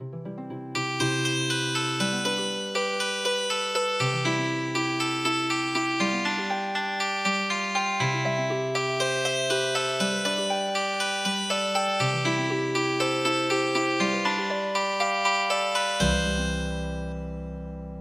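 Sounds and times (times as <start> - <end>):
healing harp music: 0.0 - 17.9.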